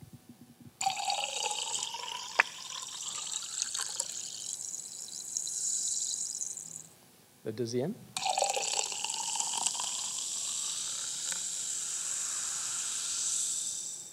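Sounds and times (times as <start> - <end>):
sparkling drink poured from a bottle: 0.8 - 6.8, 8.2 - 14.0
speech: 7.4 - 8.1.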